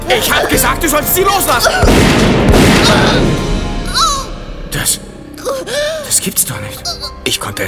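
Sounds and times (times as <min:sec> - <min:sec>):
speech: 0:00.1 - 0:04.1, 0:04.7 - 0:07.6
gunshot: 0:01.8 - 0:03.7.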